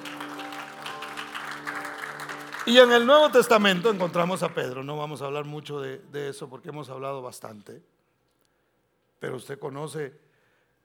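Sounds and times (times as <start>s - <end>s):
audience applauding: 0.0s - 5.0s
speech: 2.6s - 8.0s, 9.2s - 10.2s.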